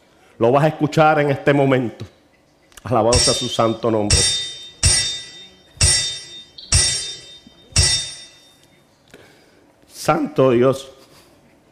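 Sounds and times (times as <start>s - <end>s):
speech: 0.4s - 2.2s, 2.8s - 4.5s, 10.1s - 11.0s
hammering nails: 3.2s - 8.4s.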